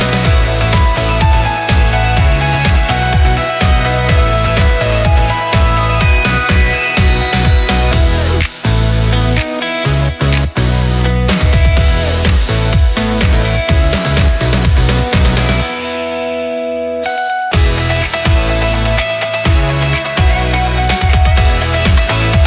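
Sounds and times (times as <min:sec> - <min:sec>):
upbeat pop guitar: 0:00.0 - 0:22.4.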